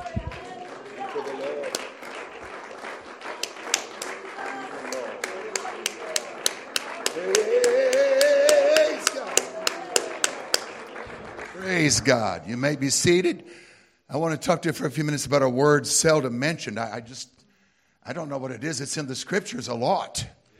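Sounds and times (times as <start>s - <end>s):
audience clapping hands in praise: 0.0s - 13.2s
speech: 11.9s - 17.4s, 18.0s - 20.4s.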